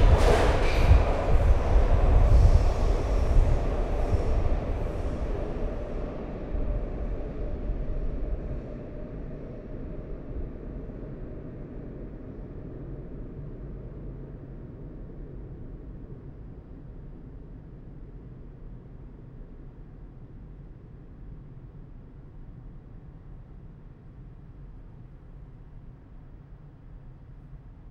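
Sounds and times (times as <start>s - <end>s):
rush of air from a metro train: 0.0s - 6.8s
metro train arriving from the right: 0.0s - 16.4s.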